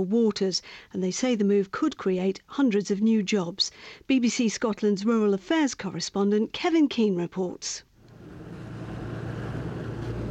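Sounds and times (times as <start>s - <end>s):
speech: 0.0s - 7.9s
creel fishing boat engine rumbling off the Applecross Peninsula in Scotland: 8.1s - 10.2s.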